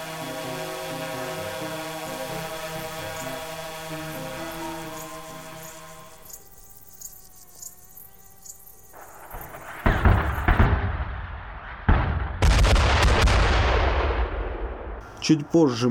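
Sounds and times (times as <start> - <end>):
mortar shell explosions: 9.6 - 14.9
speech: 15.3 - 15.8.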